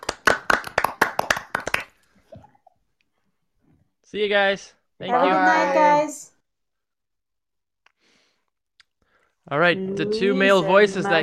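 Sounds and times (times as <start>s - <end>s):
hand clapping: 0.0s - 2.0s
speech: 4.1s - 6.3s, 9.5s - 11.2s.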